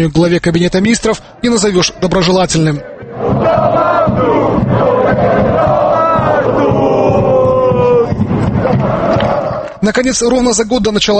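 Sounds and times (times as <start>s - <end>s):
speech: 0.0s - 3.8s, 9.8s - 11.1s
football fans chanting: 1.1s - 9.8s.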